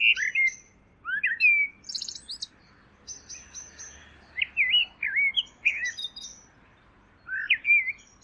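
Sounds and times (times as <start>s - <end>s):
bird song with warbled notes: 0.0s - 8.2s.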